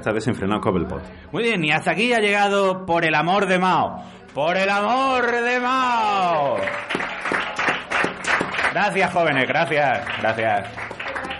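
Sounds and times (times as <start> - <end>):
speech: 0.0 - 7.4, 8.7 - 10.9
hand clapping against leg: 6.6 - 8.9, 9.6 - 11.3.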